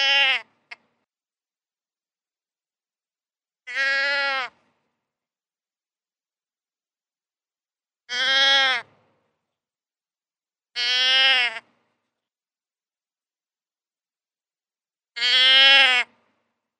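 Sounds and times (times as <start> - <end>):
deer bleating: 0.0 - 0.6, 3.6 - 4.6, 8.1 - 8.9, 10.8 - 11.7, 15.2 - 16.1.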